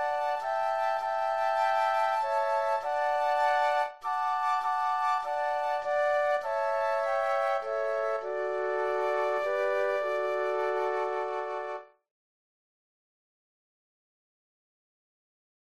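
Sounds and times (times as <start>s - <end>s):
flute trio playing: 0.0s - 11.9s.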